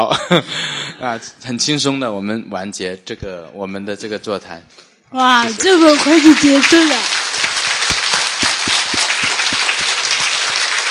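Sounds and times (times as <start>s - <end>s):
speech: 0.0s - 7.2s
audience applause: 5.6s - 10.8s.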